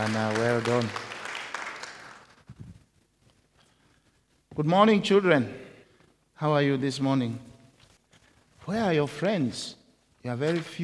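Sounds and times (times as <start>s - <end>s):
speech: 0.0s - 1.1s, 4.6s - 5.6s, 6.4s - 7.5s, 8.7s - 10.8s
light applause during a church service for children: 0.0s - 2.5s.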